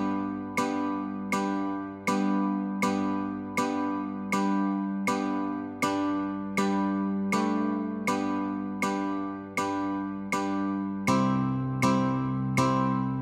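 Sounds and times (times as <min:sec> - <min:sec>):
guitar playing Christmas song notes and chords: 0:00.0 - 0:13.2.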